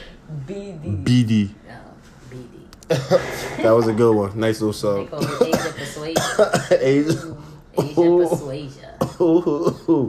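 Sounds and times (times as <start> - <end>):
speech: 0.5 - 10.0
person coughing and clearing throat: 2.9 - 3.9, 5.1 - 10.0.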